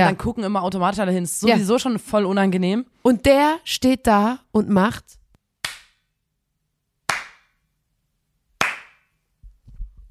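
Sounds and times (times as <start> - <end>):
speech: 0.0 - 5.2
slow hand claps: 5.6 - 6.0, 7.1 - 7.6, 8.6 - 9.1.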